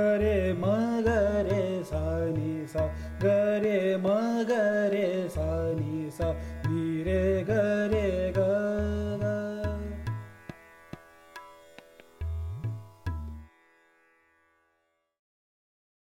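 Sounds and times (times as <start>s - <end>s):
raga vocal: 0.0s - 10.3s.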